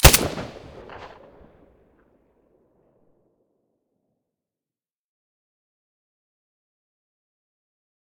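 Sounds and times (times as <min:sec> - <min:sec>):
Glock 17 pistol shot with silencer: 0:00.0 - 0:01.2.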